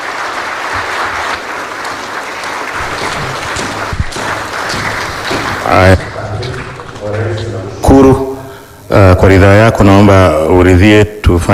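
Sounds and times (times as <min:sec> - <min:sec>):
audience applause for the President at a formal event in Tanzania: 0:00.0 - 0:07.9
speech: 0:05.7 - 0:06.1, 0:09.2 - 0:11.5.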